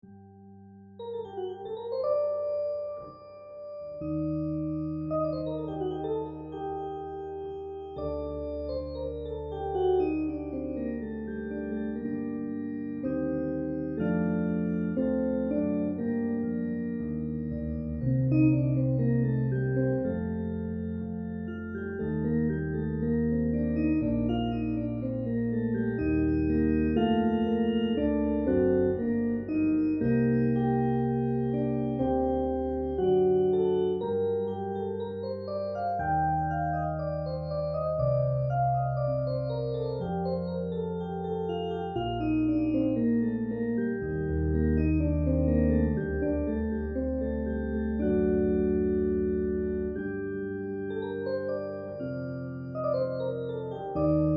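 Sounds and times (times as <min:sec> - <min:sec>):
organ: 0:00.0 - 0:54.3.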